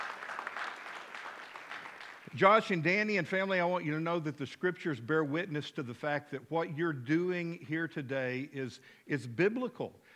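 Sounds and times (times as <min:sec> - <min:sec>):
audience clapping: 0:00.0 - 0:02.6
speech: 0:02.3 - 0:10.0.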